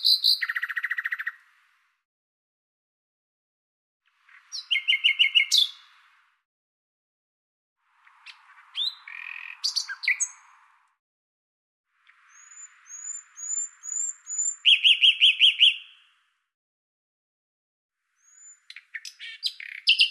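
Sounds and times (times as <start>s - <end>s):
common nightingale singing: 0.0s - 1.5s, 4.1s - 6.1s, 8.0s - 10.7s, 12.0s - 16.3s, 18.1s - 20.1s.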